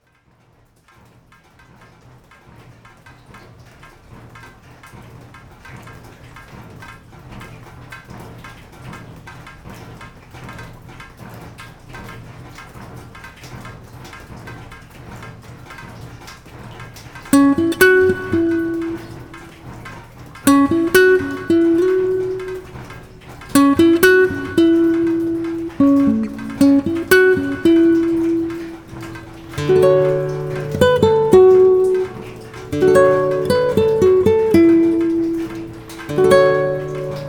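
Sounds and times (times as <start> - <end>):
melody: 17.4 - 19.5, 20.5 - 23.0, 23.6 - 37.2.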